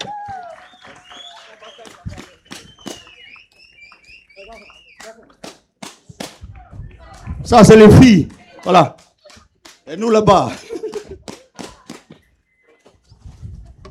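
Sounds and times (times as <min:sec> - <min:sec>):
shrill rising and falling whistles: 0:00.0 - 0:05.2
people applauding: 0:00.0 - 0:07.4, 0:08.6 - 0:10.2, 0:10.8 - 0:12.3
speech: 0:07.5 - 0:09.0, 0:09.9 - 0:10.6
laughter: 0:10.2 - 0:11.9.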